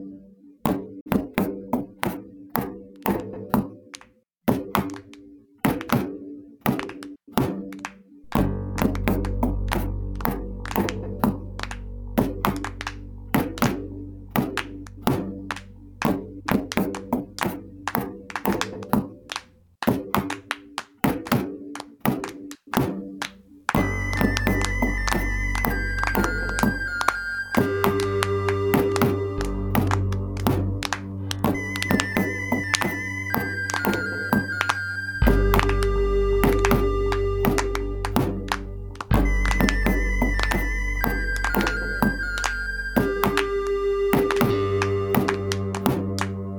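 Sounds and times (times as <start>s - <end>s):
hand clap: 0.7s - 46.4s
bass: 8.2s - 19.6s, 23.7s - 46.5s.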